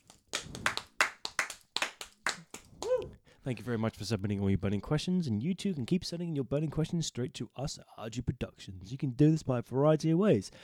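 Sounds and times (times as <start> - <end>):
hand clapping: 0.0 - 3.1
speech: 3.4 - 10.6.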